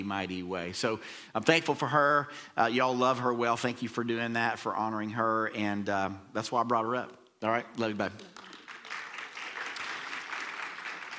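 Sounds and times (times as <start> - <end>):
speech: 0.0 - 8.4
audience applause: 8.2 - 11.1.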